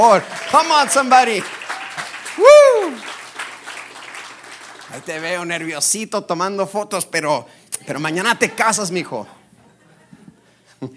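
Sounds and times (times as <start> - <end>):
speech: 0.0 - 1.6, 2.4 - 3.0, 5.0 - 9.4, 10.8 - 10.9
audience applause: 0.0 - 5.7
laughter: 8.2 - 10.9.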